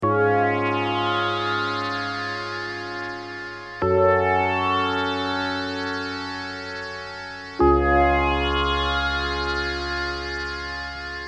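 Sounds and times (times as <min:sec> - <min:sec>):
ringtone: 0:00.4 - 0:11.2.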